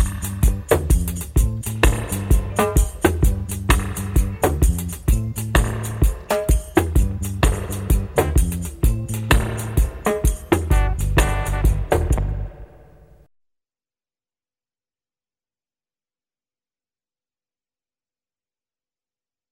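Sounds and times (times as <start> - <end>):
dub music: 0.0 - 12.7.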